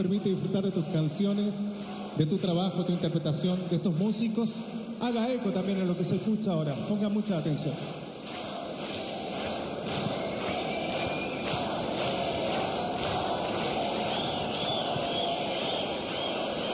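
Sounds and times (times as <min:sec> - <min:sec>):
speech: 0:00.0 - 0:08.0
audience applause: 0:07.4 - 0:16.7.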